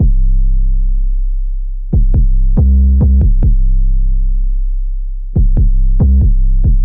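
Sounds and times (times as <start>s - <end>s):
808 bass in C: 0.0s - 6.8s.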